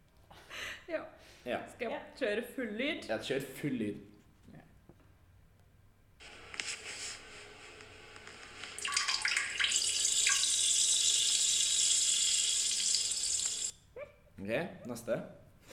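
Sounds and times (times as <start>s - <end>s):
speech: 0.9s - 4.6s, 14.4s - 15.4s
person urinating into a toilet: 8.7s - 13.7s.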